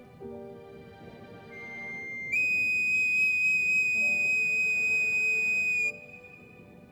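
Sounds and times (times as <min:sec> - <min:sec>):
bone whistle playing: 0:01.6 - 0:06.7.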